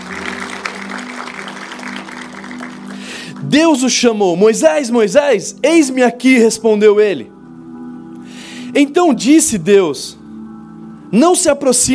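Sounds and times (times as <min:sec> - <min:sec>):
audience applauding: 0:00.0 - 0:03.6
speech: 0:03.4 - 0:07.3, 0:08.8 - 0:10.2, 0:11.1 - 0:11.9.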